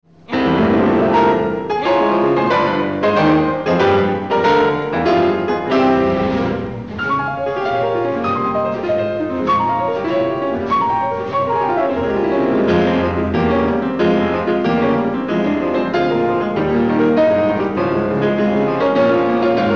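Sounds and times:
piano concerto first movement: 0.0s - 19.7s.

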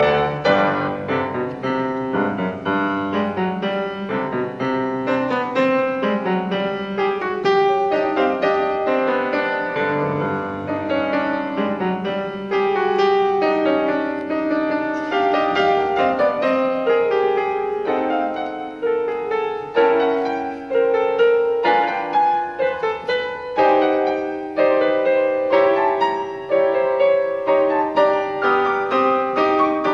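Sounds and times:
classical variations in C major on a waltz: 0.0s - 29.9s.

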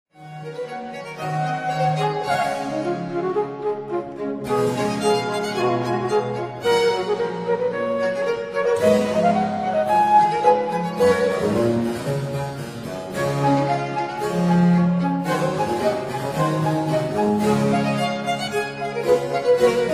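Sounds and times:
sonata for two violins and continuo: 0.1s - 19.9s.

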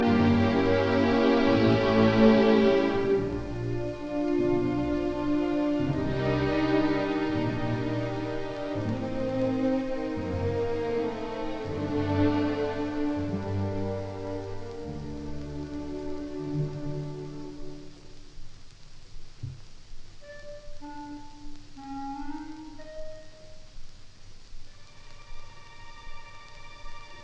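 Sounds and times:
symphony finale in B flat major: 0.0s - 18.2s, 20.2s - 23.8s.

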